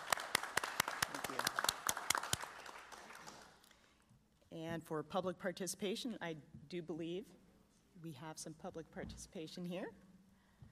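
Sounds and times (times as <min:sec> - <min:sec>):
audience applause: 0:00.0 - 0:03.6
speech: 0:04.6 - 0:07.4, 0:08.0 - 0:10.1.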